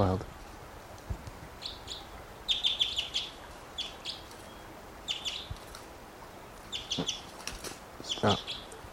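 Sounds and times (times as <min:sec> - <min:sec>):
speech: 0:00.0 - 0:00.3, 0:08.2 - 0:08.5
wild bird chirping: 0:01.6 - 0:07.4, 0:08.0 - 0:08.9.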